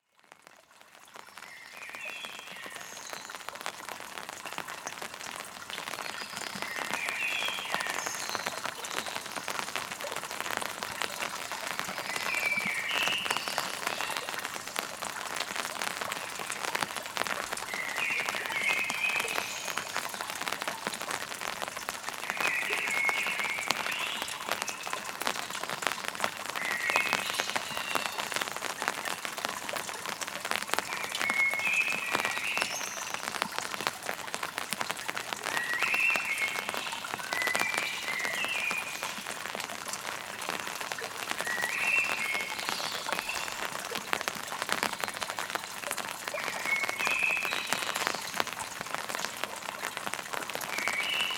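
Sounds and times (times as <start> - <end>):
rain in a metropolis: 0.0 - 51.3.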